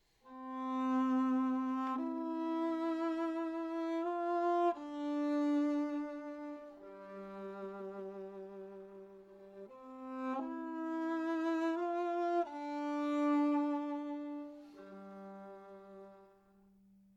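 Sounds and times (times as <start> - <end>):
viola: 0.2 - 16.7.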